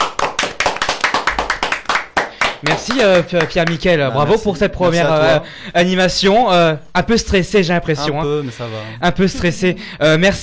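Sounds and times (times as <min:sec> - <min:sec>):
applause for the technician: 0:00.0 - 0:03.9
speech: 0:02.6 - 0:10.4.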